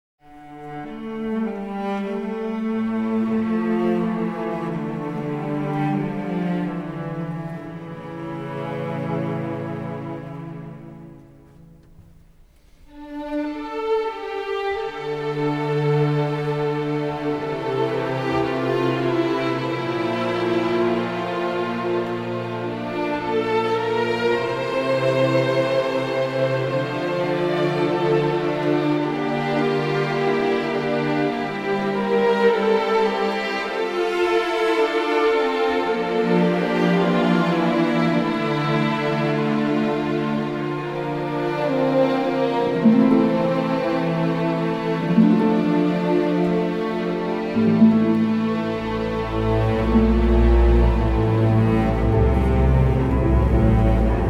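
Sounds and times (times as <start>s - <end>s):
orchestral credits music: 0.3s - 54.2s.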